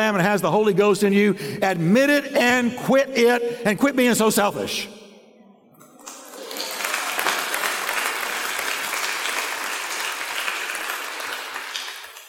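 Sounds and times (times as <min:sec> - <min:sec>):
speech: 0:00.0 - 0:05.0
tepid crowd clapping: 0:05.8 - 0:12.2.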